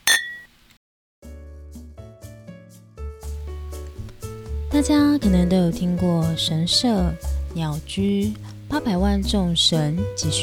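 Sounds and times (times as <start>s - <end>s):
glasses clinking in a toast: 0.0s - 0.6s
speech: 4.8s - 10.4s.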